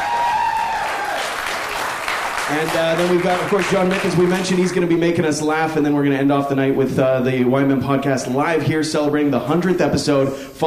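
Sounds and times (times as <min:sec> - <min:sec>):
audience clapping: 0:00.0 - 0:04.8
speech: 0:02.5 - 0:10.6.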